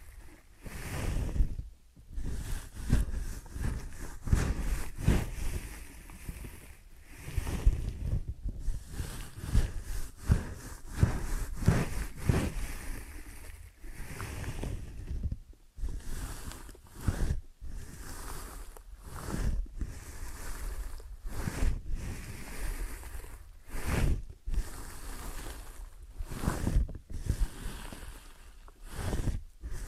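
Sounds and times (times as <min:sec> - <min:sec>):
rubbing and brushing strokes of ear and scalp massage: 0:00.0 - 0:29.8
soft low thumps: 0:01.2 - 0:06.6, 0:07.4 - 0:12.8, 0:14.5 - 0:16.0.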